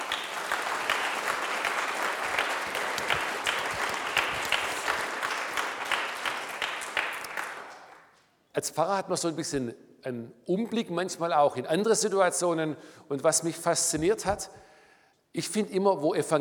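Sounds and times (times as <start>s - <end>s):
audience applause: 0.0s - 8.1s
speech: 8.6s - 14.7s, 15.4s - 16.4s.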